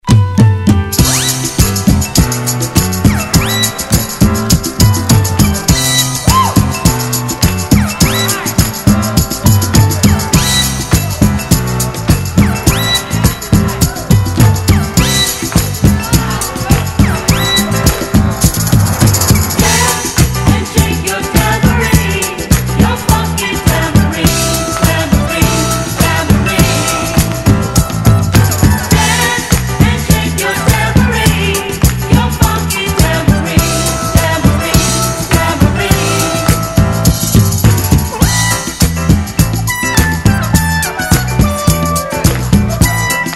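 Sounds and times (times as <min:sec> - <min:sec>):
disco music: 0:00.0 - 0:43.3.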